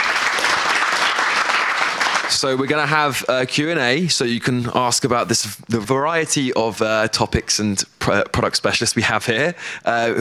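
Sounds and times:
crowd clapping: 0.0s - 2.4s
speech: 2.3s - 10.1s.

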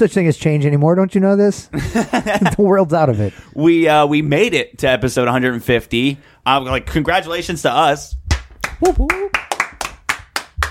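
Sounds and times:
speech: 0.0s - 8.2s, 8.8s - 9.4s
laughter: 1.7s - 3.4s
podcast hosts clapping: 8.3s - 10.6s.

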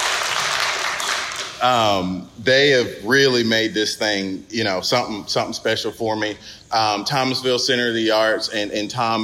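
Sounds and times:
audience applause: 0.0s - 1.6s
speech: 1.6s - 9.2s.

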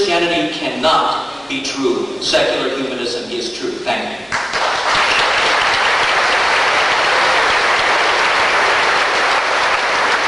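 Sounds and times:
speech: 0.1s - 4.3s
audience applause: 4.3s - 10.2s.

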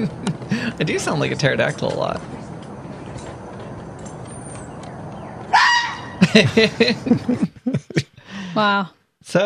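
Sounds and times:
laughter: 0.0s - 0.8s, 6.2s - 8.7s
speech: 0.0s - 2.4s, 6.3s - 8.0s, 8.6s - 9.4s
fox call: 5.5s - 6.2s.

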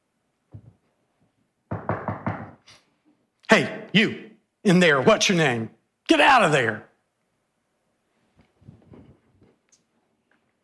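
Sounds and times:
banging on a wooden coffin lid: 1.7s - 2.6s
speech: 3.5s - 6.9s.

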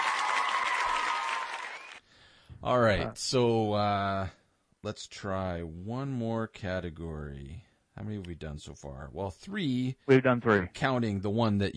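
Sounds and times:
applause sound effect: 0.0s - 2.0s
speech: 2.6s - 11.7s.

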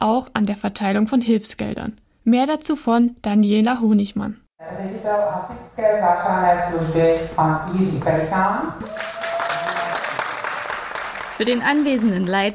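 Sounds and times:
speech: 0.1s - 9.1s, 11.4s - 12.5s
audience applause at a town meeting: 8.8s - 12.5s.

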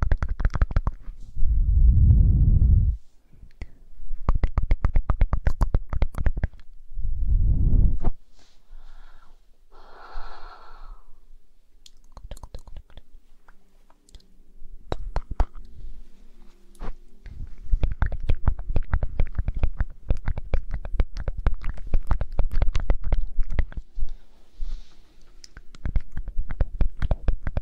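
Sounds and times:
faint low hum: 0.0s - 27.6s
ear blowing puffs of air: 8.3s - 11.3s.

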